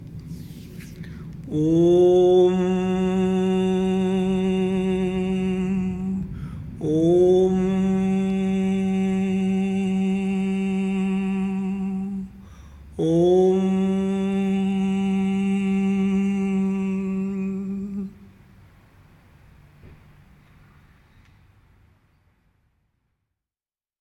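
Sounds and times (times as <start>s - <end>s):
closing chant of aum: 0.0s - 20.1s.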